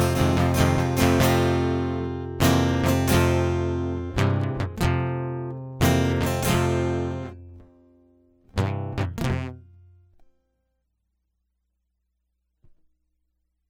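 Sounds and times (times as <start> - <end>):
guitar prelude: 0.0 - 10.2.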